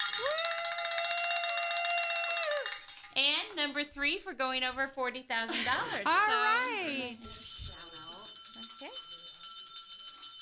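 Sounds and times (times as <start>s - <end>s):
bell ringing: 0.0s - 3.3s, 7.1s - 10.3s
speech: 0.2s - 0.5s, 3.2s - 7.4s.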